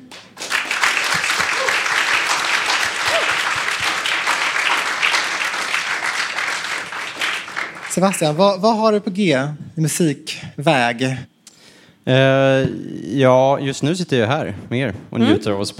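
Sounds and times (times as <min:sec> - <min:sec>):
audience applause: 0:00.0 - 0:08.6
speech: 0:08.0 - 0:11.3, 0:12.0 - 0:15.7.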